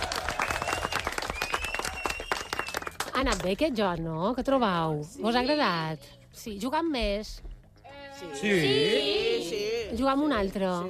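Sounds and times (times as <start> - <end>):
loud applause: 0.0 - 3.1
speech: 3.2 - 7.5, 8.2 - 10.8.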